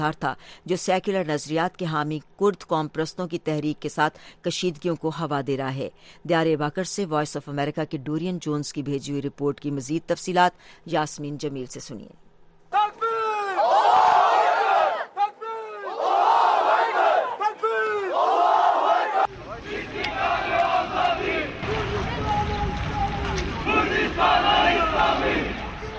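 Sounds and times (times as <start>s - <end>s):
speech: 0.0s - 12.2s
crowd chanting Allahu Akbar and Islamic Kurdistan slogans at a rally in Diyarbakir: 12.8s - 25.9s.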